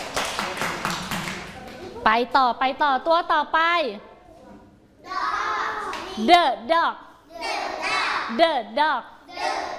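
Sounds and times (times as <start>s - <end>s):
children clapping: 0.0s - 1.8s, 5.8s - 6.2s
speech: 2.1s - 4.1s, 6.2s - 7.5s, 8.3s - 9.5s.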